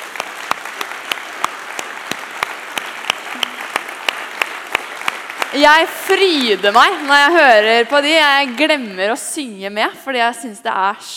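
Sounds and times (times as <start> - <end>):
audience applause: 0.0 - 9.0
speech: 5.5 - 11.1.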